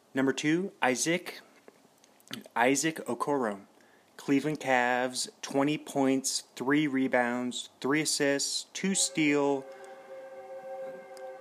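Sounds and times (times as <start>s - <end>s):
speech: 0.2s - 1.5s, 2.3s - 9.8s
passing train horn: 9.0s - 11.3s.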